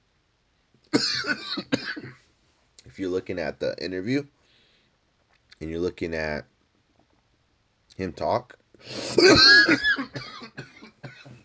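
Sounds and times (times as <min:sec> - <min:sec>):
person coughing after a hit from a vape pen: 0:01.0 - 0:02.2, 0:09.0 - 0:11.4
speech: 0:03.0 - 0:04.4, 0:05.6 - 0:06.5, 0:08.0 - 0:10.4.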